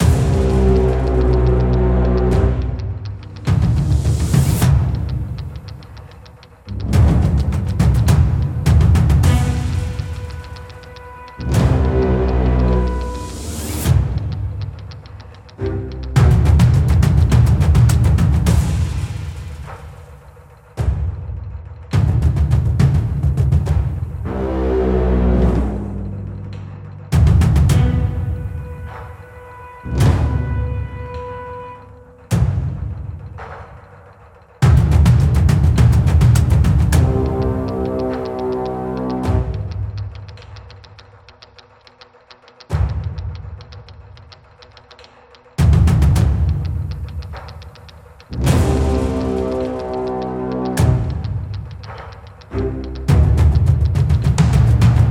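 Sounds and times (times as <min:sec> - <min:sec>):
combat game music: 0:00.0 - 0:41.4, 0:45.6 - 0:55.0.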